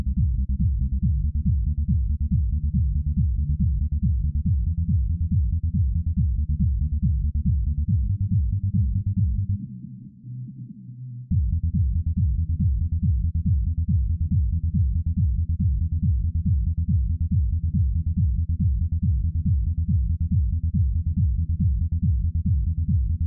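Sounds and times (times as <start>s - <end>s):
bass: 0.0s - 23.2s.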